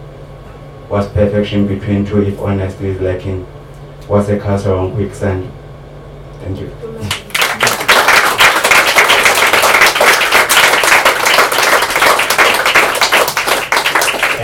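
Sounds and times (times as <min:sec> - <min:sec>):
speech: 0:00.9 - 0:05.6, 0:06.4 - 0:07.2
audience applause: 0:07.1 - 0:14.4.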